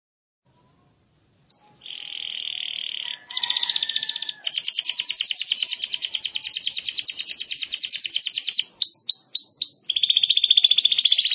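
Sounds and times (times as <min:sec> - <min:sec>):
champion singing canary song: 0:00.5 - 0:11.3.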